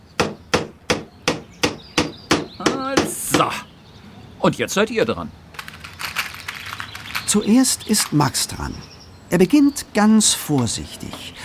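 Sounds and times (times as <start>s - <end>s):
hammer driving a nail into wood: 0.2s - 3.5s
speech: 3.4s - 3.7s, 4.4s - 5.4s, 7.3s - 11.4s.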